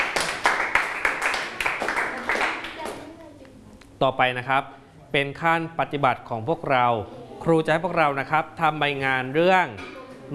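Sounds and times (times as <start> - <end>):
students clapping: 0.0 - 3.0
speech: 4.0 - 10.3.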